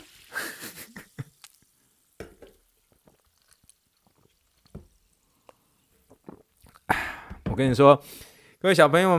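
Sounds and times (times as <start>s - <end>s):
sparkling water fizzing: 0.0s - 6.9s
speech: 7.6s - 9.1s.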